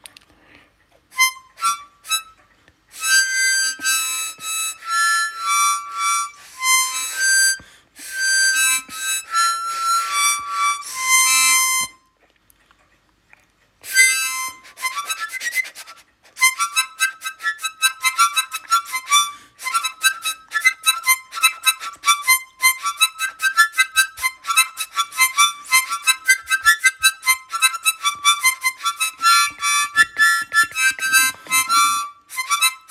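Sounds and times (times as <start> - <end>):
four-hole harmonica being played: 1.1 - 12.2, 13.8 - 32.8.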